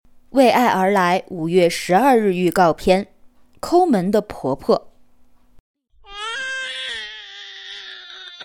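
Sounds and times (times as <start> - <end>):
speech: 0.3 - 4.9
infant grandson crying: 6.0 - 8.4.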